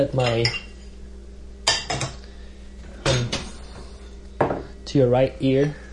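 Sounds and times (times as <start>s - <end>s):
speech: 0.0s - 0.6s, 4.9s - 5.8s
plates and cutlery clinking as dishes are unloaded from a dishwasher: 0.2s - 0.8s, 1.7s - 2.2s, 3.0s - 4.6s.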